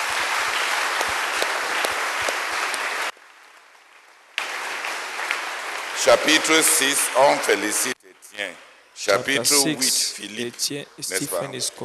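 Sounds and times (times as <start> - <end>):
audience applause: 0.0 - 3.2, 4.4 - 8.0
speech: 6.0 - 11.8.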